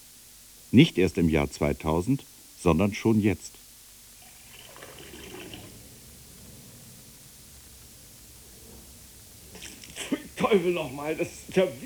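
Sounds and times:
steady quiet hiss: 0:00.0 - 0:11.8
speech: 0:00.7 - 0:03.6, 0:10.5 - 0:11.8
tap water poured into a glass: 0:04.2 - 0:05.9.

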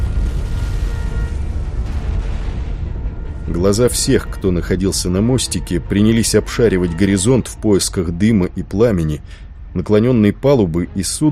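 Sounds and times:
powerful explosion boom with heavy continuous low rumble: 0:00.0 - 0:07.3
crackling noise: 0:00.0 - 0:11.2
speech: 0:03.5 - 0:11.2.

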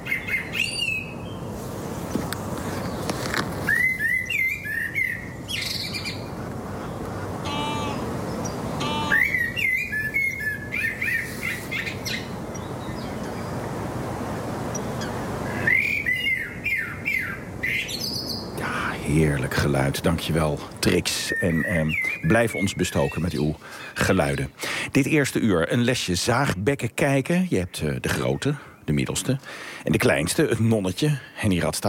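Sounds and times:
common blackbird singing in IJsselstein in the Netherlands: 0:00.0 - 0:01.5, 0:03.6 - 0:13.6, 0:14.7 - 0:23.6
low hiss: 0:00.0 - 0:31.8
speech: 0:19.8 - 0:31.8.

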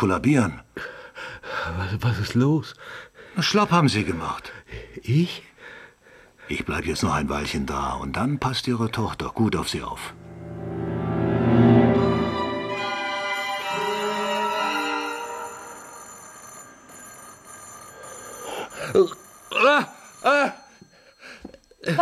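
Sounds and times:
speech: 0:00.0 - 0:05.5, 0:06.5 - 0:10.2, 0:19.0 - 0:20.6, 0:21.8 - 0:22.0
bell ringing at night: 0:10.1 - 0:22.0.

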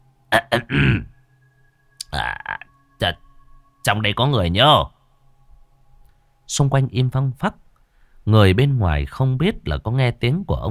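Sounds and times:
man clearing throat: 0:00.3 - 0:01.1
speech: 0:00.5 - 0:01.1, 0:03.8 - 0:05.0, 0:06.5 - 0:07.6, 0:08.2 - 0:10.6.

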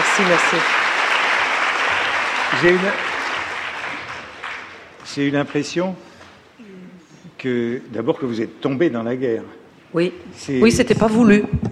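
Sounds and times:
audience applause after a lecture: 0:00.0 - 0:05.0
speech: 0:00.2 - 0:00.9, 0:02.5 - 0:03.1, 0:05.1 - 0:06.1, 0:07.4 - 0:11.7.

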